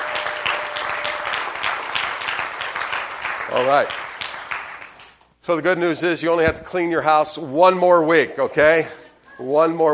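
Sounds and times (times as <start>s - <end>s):
audience applause: 0.0s - 5.1s
speech: 3.6s - 4.0s, 5.5s - 9.9s.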